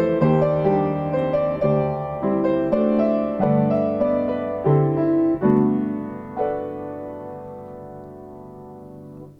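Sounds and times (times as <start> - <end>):
weeping waltz: 0.0 - 7.0.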